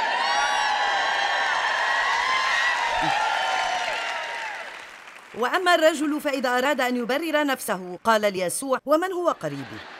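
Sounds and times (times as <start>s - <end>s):
crowd shouting and cheering: 0.0s - 4.9s
speech: 5.4s - 9.9s.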